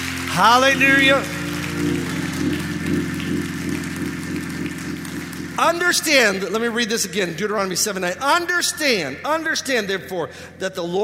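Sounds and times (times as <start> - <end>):
audience hand clapping in praise: 0.0 - 7.2
sustained low organ-like chords droning: 0.0 - 9.2
speech: 0.4 - 2.1, 5.6 - 11.0.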